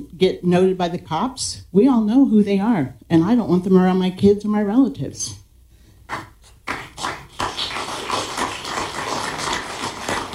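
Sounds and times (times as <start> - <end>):
speech: 0.0 - 5.4
audience clapping: 6.1 - 10.3.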